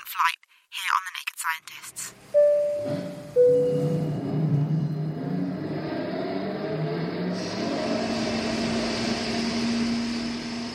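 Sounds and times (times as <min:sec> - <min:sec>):
speech: 0:00.1 - 0:03.7
large engine: 0:03.4 - 0:10.7.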